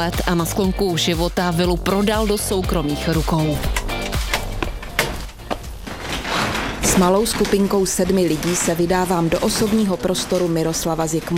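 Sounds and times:
speech: 0.0s - 3.8s, 6.9s - 11.3s
footsteps of a small group on creaking parquet in a functionalist villa: 3.7s - 11.3s.

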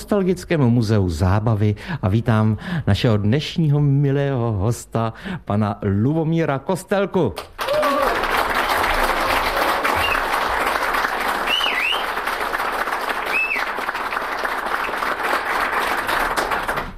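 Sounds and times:
speech: 0.1s - 7.5s
audience applause: 7.5s - 16.9s.

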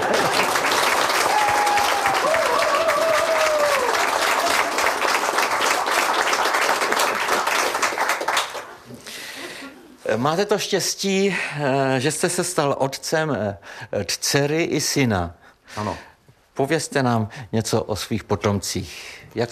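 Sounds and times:
large audience applause: 0.0s - 8.9s
speech: 10.2s - 19.5s.

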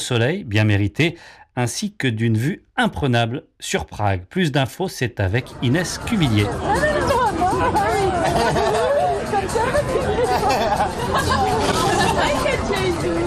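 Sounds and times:
speech: 0.1s - 8.7s
outdoor crowd chattering and laughing in a park: 5.3s - 13.2s.

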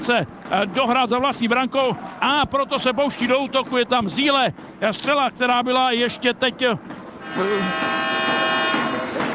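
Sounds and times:
speech: 0.0s - 7.9s
end-of-period siren at an ice hockey game: 7.2s - 9.2s.

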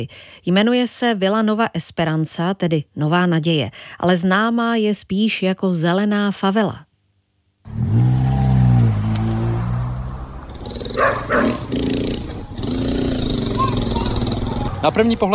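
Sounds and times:
speech: 0.0s - 6.9s, 14.8s - 15.3s
engine: 7.7s - 15.2s
dogs barking at visitors: 10.9s - 11.8s, 13.5s - 14.8s.

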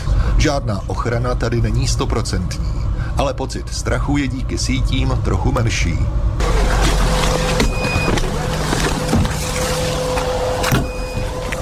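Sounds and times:
speech: 0.4s - 6.8s
loud rumble of engine and road noise: 6.2s - 11.6s
drone detector high electronic beeps: 7.6s - 8.2s, 10.6s - 11.4s.

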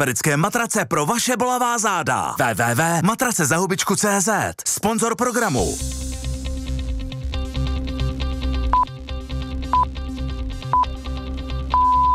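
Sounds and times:
speech: 0.0s - 6.0s
music: 4.8s - 12.1s
Czech Radio Zlín time signal beeps: 11.7s - 12.1s.

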